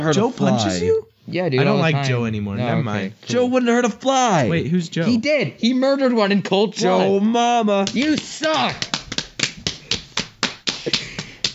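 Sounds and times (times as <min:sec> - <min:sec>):
speech: 0:00.0 - 0:08.9, 0:10.8 - 0:11.0
hands slapping knees: 0:07.8 - 0:11.5.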